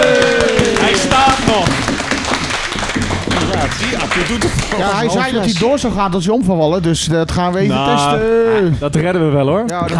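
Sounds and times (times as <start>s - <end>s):
small group applauding: 0.0s - 5.9s
speech: 4.3s - 9.9s.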